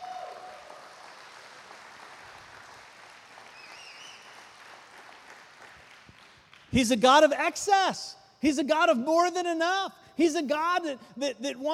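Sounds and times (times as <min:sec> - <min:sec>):
audience applause: 0:00.0 - 0:06.7
speech: 0:06.7 - 0:11.7.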